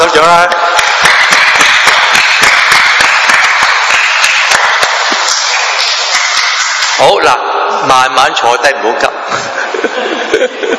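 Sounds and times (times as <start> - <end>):
rapid hand clapping in a clapping health exercise: 0.0 - 7.1
speech: 0.2 - 0.6, 7.0 - 10.7
laughter: 9.3 - 10.7.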